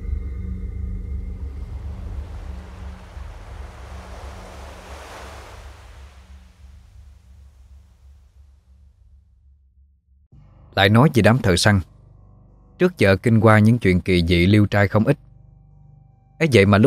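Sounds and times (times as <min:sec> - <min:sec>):
low rumble: 0:00.0 - 0:10.7
ocean waves crashing on a vast open sea: 0:01.3 - 0:08.6
speech: 0:10.8 - 0:11.9, 0:12.8 - 0:15.3, 0:16.4 - 0:16.8.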